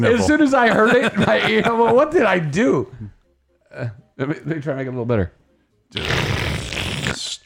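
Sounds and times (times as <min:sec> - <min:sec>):
laughter: 0:00.0 - 0:02.1
speech: 0:00.0 - 0:03.1, 0:03.7 - 0:06.3
strong sniffle: 0:06.0 - 0:07.2.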